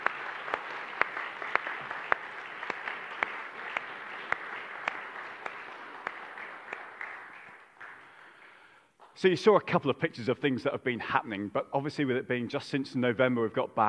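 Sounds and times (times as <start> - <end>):
audience applause: 0.0 - 8.7
speech: 9.2 - 13.8.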